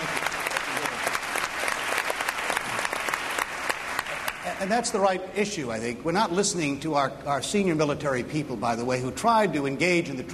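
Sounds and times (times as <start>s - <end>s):
crowd applause: 0.0s - 4.7s
speech: 4.6s - 10.3s.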